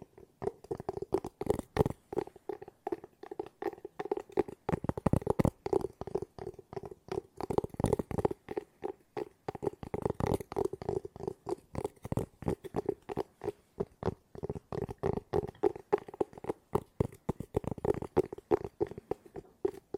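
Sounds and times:
fast hollow tapping: 0.0s - 19.9s.

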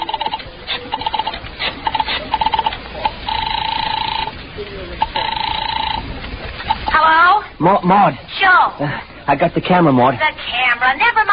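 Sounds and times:
dialing a telephone: 0.0s - 7.0s
speech: 7.6s - 11.3s.

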